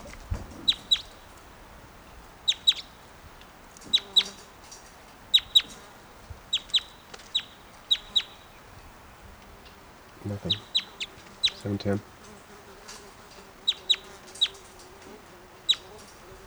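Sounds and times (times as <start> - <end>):
chickens clucking: 0.0 - 16.4
speech: 11.7 - 12.1.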